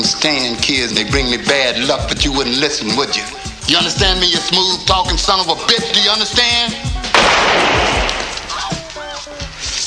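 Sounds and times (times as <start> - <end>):
speech: 0.2 - 7.8
gunshot: 7.1 - 8.8.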